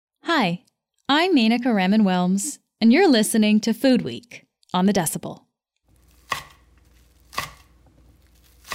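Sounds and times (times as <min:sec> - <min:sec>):
speech: 0:00.2 - 0:05.4
knife dicing onions: 0:06.0 - 0:08.7.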